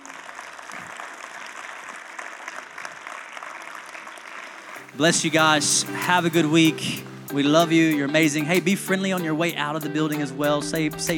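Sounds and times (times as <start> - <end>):
audience applauding: 0.0 - 5.5
speech: 5.0 - 11.1.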